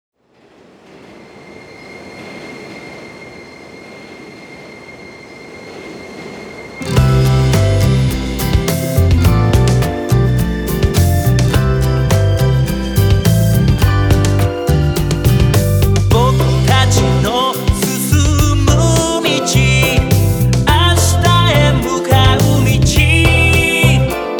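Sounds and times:
music loop: 0:06.9 - 0:24.3.

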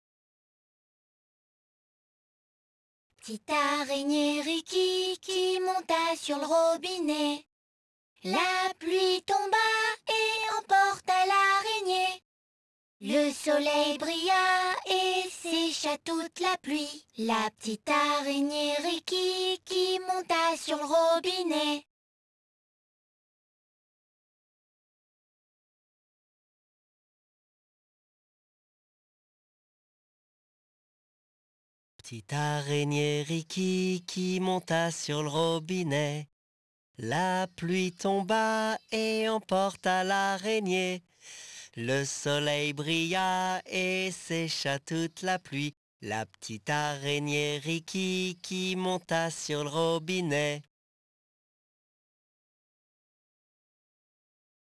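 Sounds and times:
person singing a nursery song in French: 0:03.2 - 0:07.5, 0:08.2 - 0:12.2, 0:13.0 - 0:21.9, 0:32.0 - 0:36.2, 0:37.0 - 0:41.0, 0:41.8 - 0:50.7.

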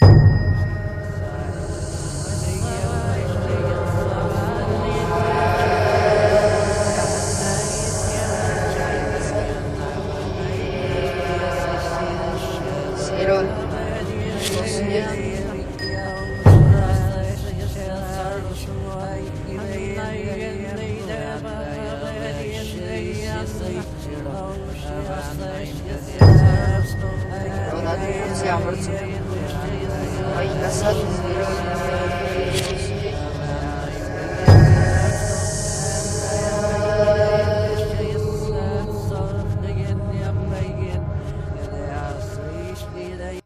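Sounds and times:
horror ambience: 0:00.0 - 0:43.4
people whispering: 0:01.0 - 0:43.4.

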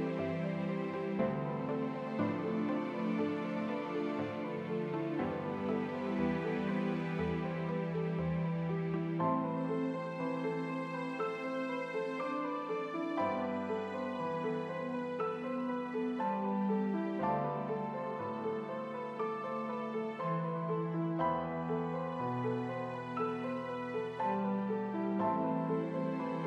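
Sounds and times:
piano strings ambience: 0:00.0 - 0:26.4.

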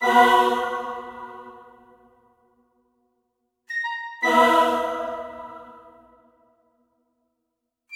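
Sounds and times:
choir singing in a cave: 0:00.0 - 0:02.1, 0:04.2 - 0:06.2.

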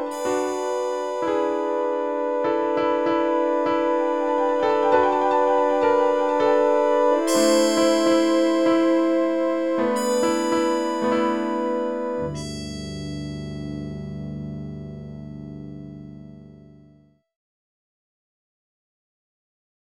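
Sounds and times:
main menu music: 0:00.0 - 0:12.4.

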